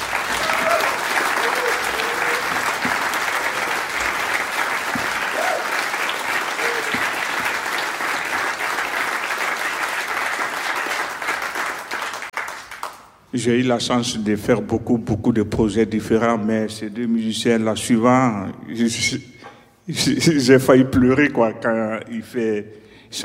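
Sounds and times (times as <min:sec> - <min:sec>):
audience applause for two guitarists: 0:00.0 - 0:13.0
speech: 0:13.4 - 0:19.3, 0:19.9 - 0:23.2.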